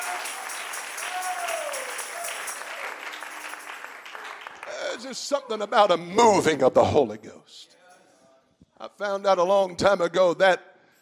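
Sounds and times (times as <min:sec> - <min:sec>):
audience clapping hands: 0:00.0 - 0:05.4
speech: 0:05.0 - 0:07.7, 0:08.8 - 0:10.7.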